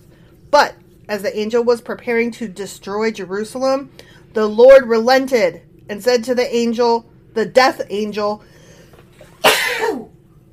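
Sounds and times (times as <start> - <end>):
speech: 0.5 - 8.5
sneeze: 9.3 - 10.2.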